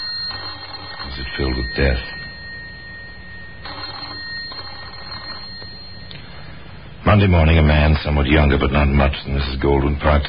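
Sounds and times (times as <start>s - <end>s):
telephone bell ringing: 0.0s - 6.6s
low steady hum: 0.0s - 10.2s
speech: 1.2s - 2.2s, 7.2s - 10.2s.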